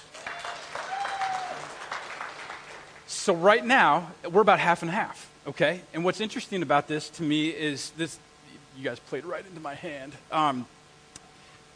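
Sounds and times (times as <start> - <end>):
audience clapping hands: 0.0 - 3.2
speech: 3.2 - 10.8.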